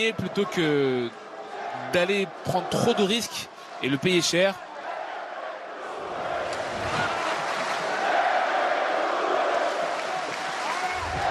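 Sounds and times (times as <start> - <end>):
speech: 0.0 - 1.2, 1.9 - 4.7
boxing crowd singing and cheering for its fighter: 0.0 - 11.2.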